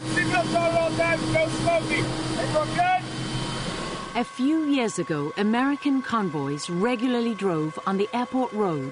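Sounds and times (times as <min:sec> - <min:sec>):
helicopter in flight: 0:00.0 - 0:08.9
speech: 0:00.4 - 0:03.1, 0:04.2 - 0:08.9.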